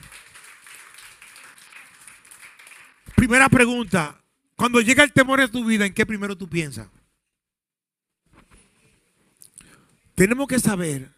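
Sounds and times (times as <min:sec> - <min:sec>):
crowd applause: 0:00.0 - 0:03.5
speech: 0:03.2 - 0:07.0, 0:10.2 - 0:11.1.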